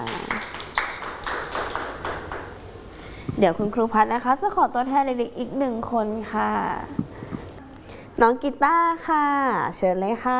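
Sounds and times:
children clapping: 0.0s - 2.6s
speech: 3.4s - 7.0s, 8.2s - 10.3s.

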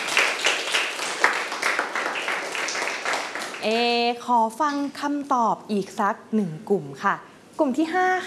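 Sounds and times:
classroom children clapping for a classmate: 0.0s - 3.8s
speech: 3.6s - 8.2s.

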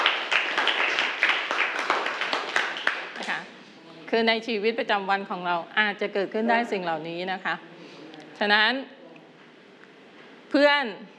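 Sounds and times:
classroom applause: 0.0s - 3.5s
speech: 4.1s - 7.7s, 8.4s - 9.0s, 10.5s - 11.1s.

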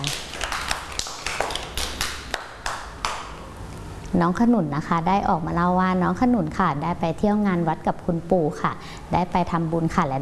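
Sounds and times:
group of children clapping in a steady quick rhythm: 0.0s - 3.4s
speech: 4.2s - 10.2s.

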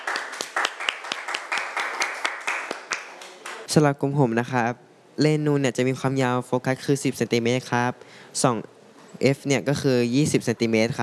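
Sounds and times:
group applause: 0.0s - 3.7s
speech: 3.7s - 11.0s.

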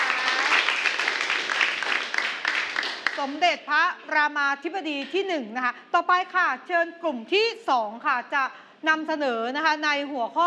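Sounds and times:
applause for a presenting group: 0.0s - 3.4s
speech: 3.2s - 10.4s.

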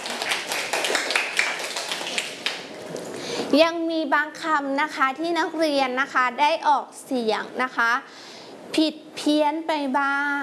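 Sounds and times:
students clapping hands: 0.0s - 2.7s
speech: 3.5s - 8.2s, 8.8s - 10.4s.

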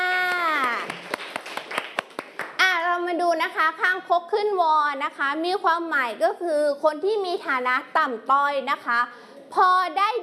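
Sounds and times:
class of students clapping for a classmate's correct answer: 0.3s - 2.6s
speech: 3.7s - 10.2s.

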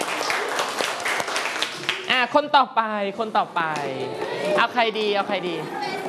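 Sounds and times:
children clapping for a classmate: 0.0s - 2.1s
speech: 2.2s - 5.9s.

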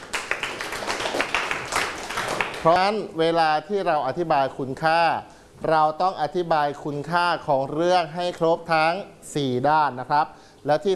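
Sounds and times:
classmates clapping for a student in a Thai literature class: 0.0s - 2.9s
speech: 2.6s - 10.9s.

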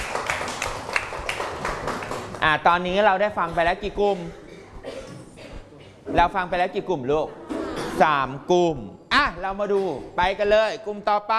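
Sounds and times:
classroom clapping: 0.0s - 2.8s
speech: 2.4s - 4.4s, 6.1s - 7.4s, 8.0s - 11.3s.

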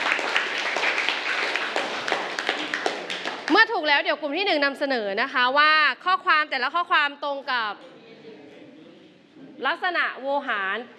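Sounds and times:
classroom clapping: 0.0s - 3.8s
speech: 3.6s - 7.9s, 9.6s - 10.9s.

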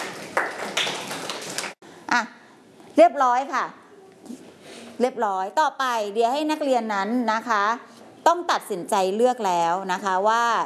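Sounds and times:
students clapping for classmates in a classroom: 0.0s - 1.8s
speech: 2.1s - 2.4s, 3.0s - 4.4s, 5.0s - 10.6s.

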